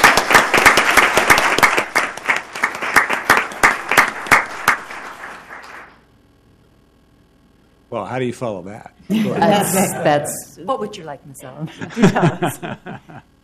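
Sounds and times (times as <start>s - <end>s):
audience applause: 0.0s - 6.0s
speech: 8.1s - 13.3s
laughter: 9.1s - 10.5s, 11.6s - 13.2s.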